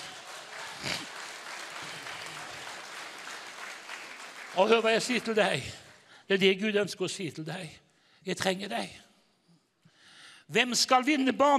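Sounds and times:
audience applause: 0:00.0 - 0:06.0
speech: 0:04.6 - 0:09.0, 0:10.5 - 0:11.5.

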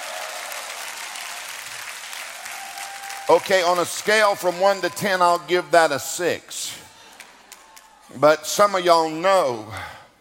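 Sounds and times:
church congregation applauding: 0:00.0 - 0:05.7, 0:06.9 - 0:08.1
speech: 0:03.3 - 0:06.8, 0:08.1 - 0:10.0.

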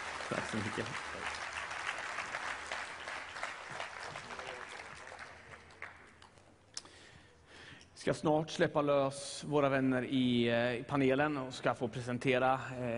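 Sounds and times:
audience applause: 0:00.0 - 0:06.4
speech: 0:00.3 - 0:01.5, 0:08.0 - 0:12.9.

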